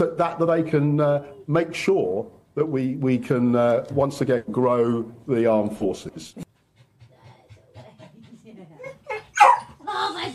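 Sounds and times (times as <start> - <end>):
speech: 0.0 - 6.4
excited dogs panting: 6.4 - 9.8
dogs whimpering: 8.8 - 9.7.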